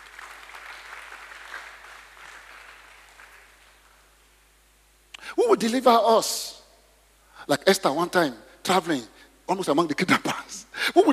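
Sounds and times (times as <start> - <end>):
audience clapping: 0.0 - 4.4
speech: 5.3 - 6.6, 7.4 - 11.1.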